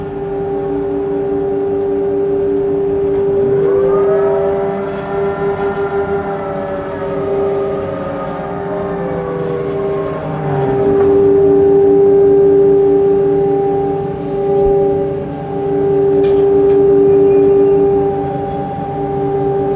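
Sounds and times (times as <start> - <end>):
crane working on oil pipeline service vessel: 0.0 - 19.7.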